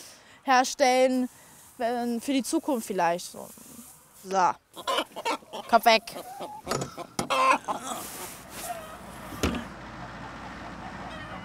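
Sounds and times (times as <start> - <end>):
speech: 0.4 - 7.1
chickens clucking: 3.0 - 11.4.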